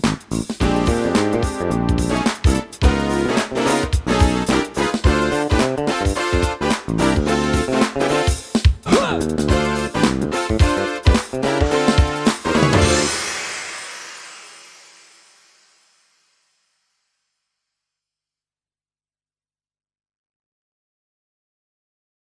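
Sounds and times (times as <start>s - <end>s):
mazurka backing track: 0.0s - 13.2s.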